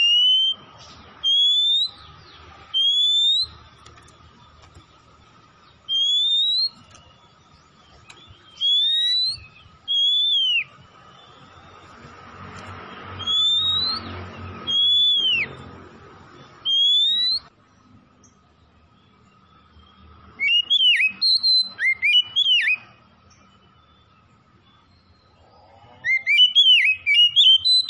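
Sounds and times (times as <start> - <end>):
Oriental magpie-robin singing: 0.0 - 25.4, 26.0 - 27.8.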